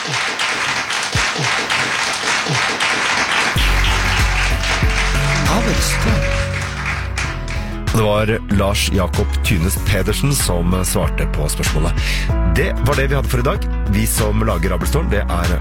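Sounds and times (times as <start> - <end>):
audience applause: 0.0 - 7.9
low tonal music: 3.6 - 10.0
speech: 8.0 - 15.5.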